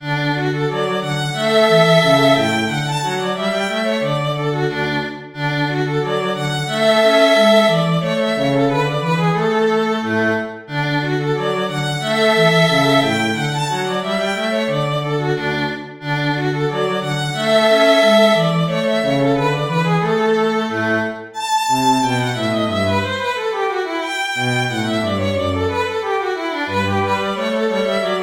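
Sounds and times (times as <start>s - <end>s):
violin and cello duet: 0.0s - 28.2s.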